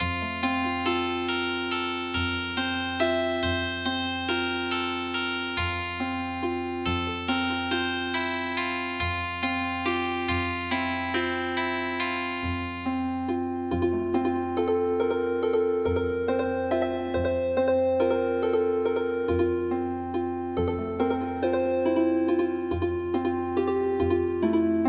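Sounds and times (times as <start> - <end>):
healing harp: 0.0 - 24.8.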